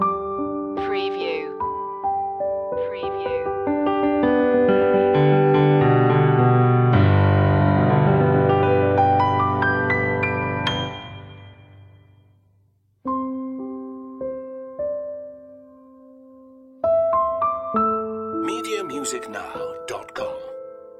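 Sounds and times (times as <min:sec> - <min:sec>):
piano: 0:00.0 - 0:20.9.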